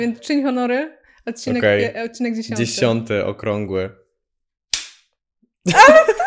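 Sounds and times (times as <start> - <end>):
speech: 0.0 - 4.0, 5.6 - 6.1
film clapperboard snapping shut: 4.7 - 5.1
laughter: 5.7 - 6.2.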